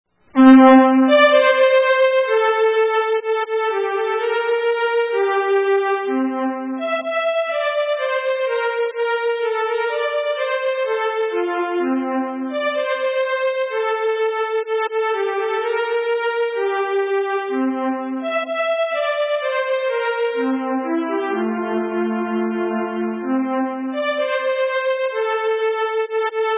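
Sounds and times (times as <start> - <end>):
Swedish polska folk tune: 0.3 - 26.5.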